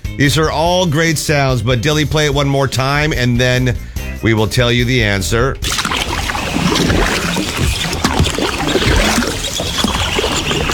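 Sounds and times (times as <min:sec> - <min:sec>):
speech: 0:00.2 - 0:06.0
canoe paddle splashing through water: 0:05.6 - 0:10.7.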